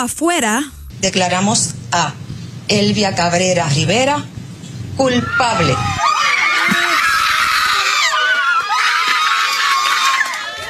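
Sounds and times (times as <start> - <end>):
speech: 0.0 - 4.3, 5.0 - 6.0
crowd shouting in gratitude after verdict: 5.2 - 10.6.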